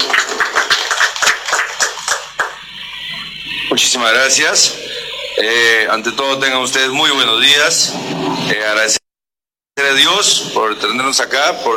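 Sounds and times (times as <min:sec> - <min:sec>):
audience applause: 0:00.0 - 0:02.8
speech: 0:03.7 - 0:04.8, 0:05.4 - 0:09.0, 0:09.8 - 0:11.7.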